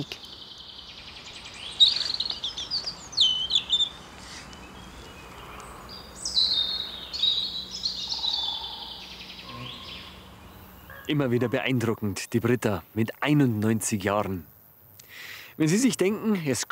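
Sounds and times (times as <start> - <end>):
speech: 0.0 - 0.2, 11.1 - 14.5, 15.6 - 16.7
small birds singing in a forest: 0.0 - 16.7.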